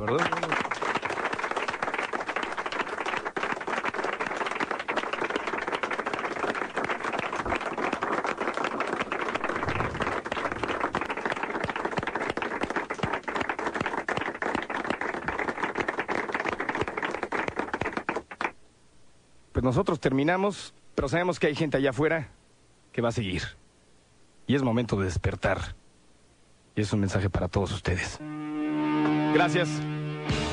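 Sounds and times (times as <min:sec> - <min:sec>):
speech: 0:00.0 - 0:00.6, 0:19.6 - 0:22.4, 0:23.0 - 0:23.6, 0:24.5 - 0:25.8, 0:26.8 - 0:28.3, 0:29.3 - 0:30.4
audience applause: 0:00.0 - 0:18.6.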